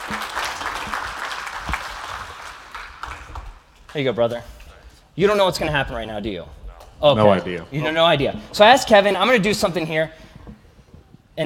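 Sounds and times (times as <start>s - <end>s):
audience round of applause: 0.0s - 4.0s
speech: 3.9s - 4.6s, 5.2s - 10.2s.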